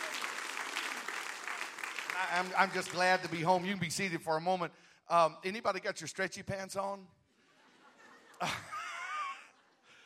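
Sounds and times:
audience clapping hands: 0.0 - 3.9
speech: 2.2 - 7.2, 8.4 - 8.7
laughter: 7.4 - 10.0.

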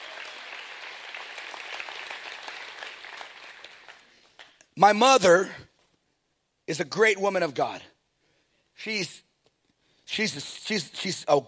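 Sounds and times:
audience clapping: 0.0 - 4.7
speech: 4.8 - 5.6, 6.7 - 7.9, 8.8 - 9.2, 10.1 - 11.4.

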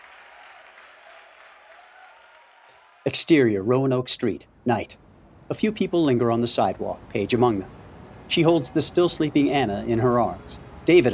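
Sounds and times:
theater audience applause at curtain call: 0.0 - 3.2
speech: 3.0 - 11.1.

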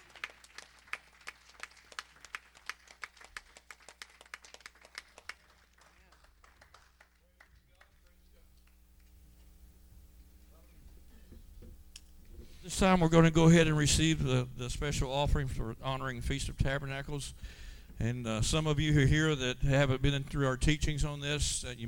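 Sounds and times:
rhythmic hand clapping in a church service: 0.0 - 9.2
speech: 12.7 - 21.8.

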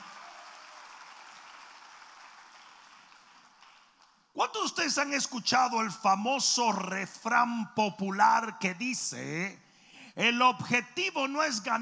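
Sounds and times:
audience applause: 0.0 - 4.0
speech: 4.4 - 9.6, 10.2 - 11.8.

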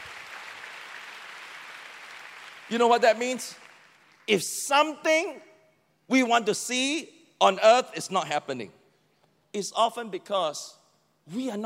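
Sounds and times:
church congregation applauding during a sermon: 0.0 - 4.4
speech: 2.7 - 3.6, 4.3 - 5.5, 6.1 - 8.8, 9.5 - 11.6.

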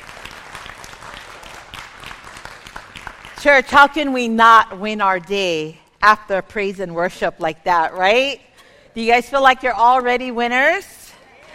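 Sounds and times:
audience clapping: 0.0 - 3.7, 11.2 - 11.5
speech: 3.4 - 10.9.

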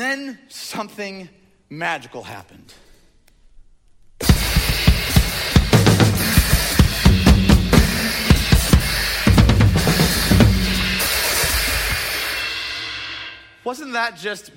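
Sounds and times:
speech: 0.1 - 2.8, 13.6 - 14.5
drum set played erratically: 4.2 - 13.4
crashing cymbals: 4.2 - 13.7.

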